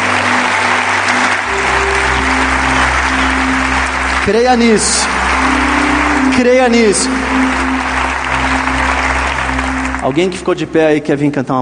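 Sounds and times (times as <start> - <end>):
audience applauding loudly: 0.0 - 10.9
low sustained organ-like hum: 0.0 - 11.0
speech: 4.2 - 5.2, 6.4 - 7.4, 10.0 - 11.5.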